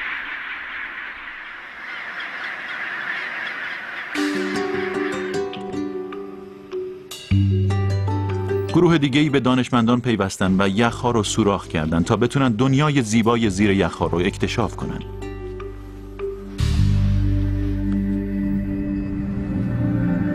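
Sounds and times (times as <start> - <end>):
steady tonal notes: 0.2 - 20.3
penguin colony calling: 1.7 - 7.1
speech: 8.8 - 15.1.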